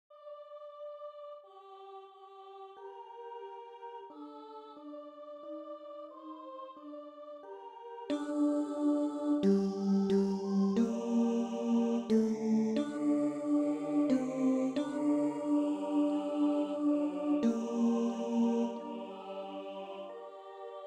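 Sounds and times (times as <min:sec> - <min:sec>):
tenor singing: 0:08.1 - 0:20.8.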